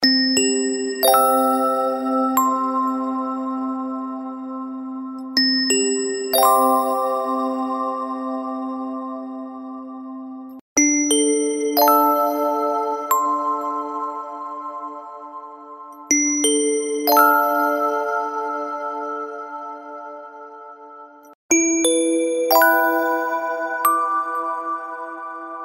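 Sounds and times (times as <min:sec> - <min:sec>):
glockenspiel: 0:00.0 - 0:20.4, 0:21.2 - 0:25.6.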